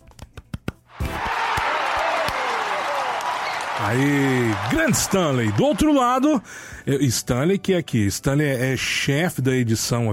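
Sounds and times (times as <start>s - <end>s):
audience clapping: 1.0s - 6.4s
speech: 3.8s - 10.1s.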